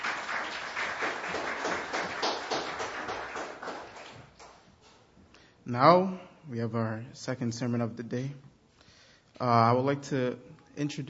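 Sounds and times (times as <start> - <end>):
audience applause for children: 0.0 - 4.7
speech: 5.7 - 8.5, 9.4 - 11.0.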